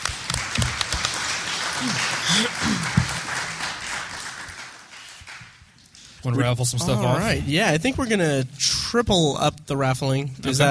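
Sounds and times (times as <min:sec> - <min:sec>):
audience applause: 0:00.0 - 0:05.6
speech: 0:01.8 - 0:03.0, 0:06.2 - 0:10.7.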